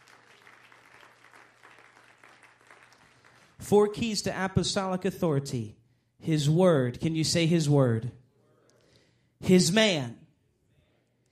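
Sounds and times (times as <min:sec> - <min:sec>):
roomful of people applauding: 0:00.0 - 0:03.9
speech: 0:03.6 - 0:08.2, 0:09.5 - 0:10.2.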